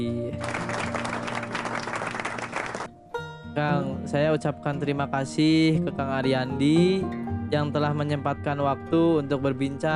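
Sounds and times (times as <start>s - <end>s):
speech: 0.0s - 0.8s, 3.6s - 9.9s
applause: 0.4s - 2.9s.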